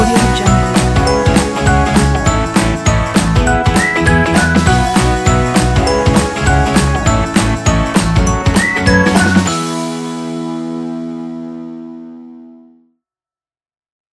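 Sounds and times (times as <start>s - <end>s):
upbeat fun energetic indie rock music: 0.0s - 9.9s.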